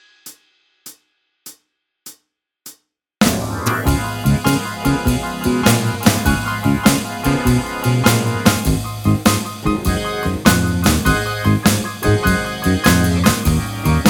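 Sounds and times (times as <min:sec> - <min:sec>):
tenor saxophone backing track: 0:03.2 - 0:14.0.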